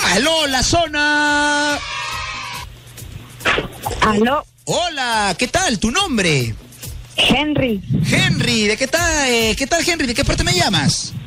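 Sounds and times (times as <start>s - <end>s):
speech: 0.1s - 2.0s, 3.6s - 6.6s, 7.2s - 11.2s
cat crying out: 1.8s - 2.7s.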